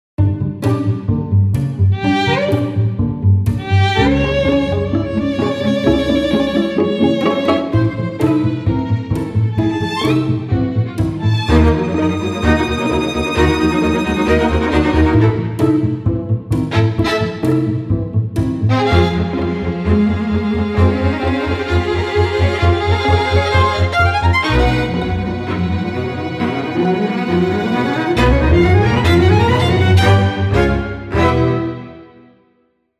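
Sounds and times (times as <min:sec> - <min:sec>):
solo chamber piece: 0:00.2 - 0:32.3.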